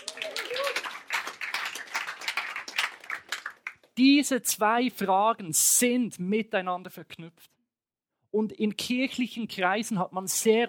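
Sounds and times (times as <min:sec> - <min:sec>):
audience applause: 0:00.0 - 0:03.9
speech: 0:04.0 - 0:07.5, 0:08.3 - 0:10.6.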